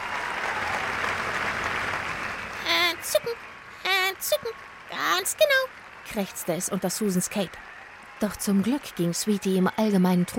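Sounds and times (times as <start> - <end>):
concert audience applause: 0.0 - 10.3
speech: 3.1 - 3.5, 4.2 - 10.3.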